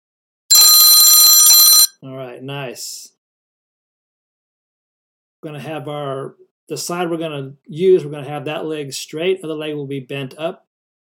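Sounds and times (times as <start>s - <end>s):
exercise timer bell ringing: 0.6s - 1.9s
speech: 2.1s - 3.2s, 5.4s - 10.7s.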